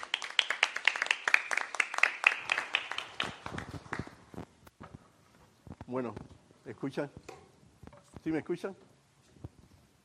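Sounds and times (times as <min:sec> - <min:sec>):
audience applause: 0:00.0 - 0:04.2
speech: 0:05.9 - 0:07.4, 0:08.2 - 0:08.9.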